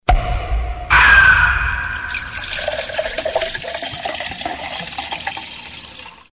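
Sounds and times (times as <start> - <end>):
beer sound effect: 0.9 - 6.0.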